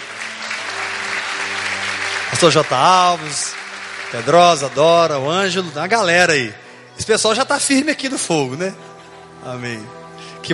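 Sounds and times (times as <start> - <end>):
audience applause: 0.0 - 6.4
speech: 2.4 - 10.5.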